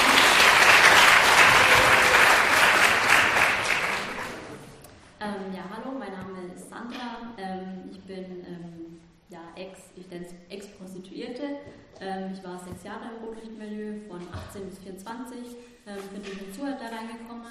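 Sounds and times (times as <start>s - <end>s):
audience applause: 0.0s - 4.8s
speech: 12.9s - 17.4s.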